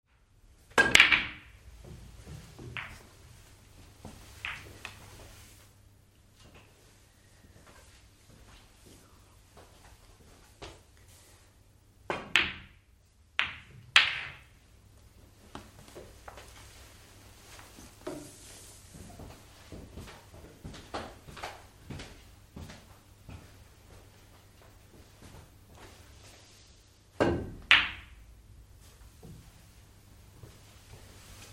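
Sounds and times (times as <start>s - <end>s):
billiards room ambience: 0.1s - 31.5s.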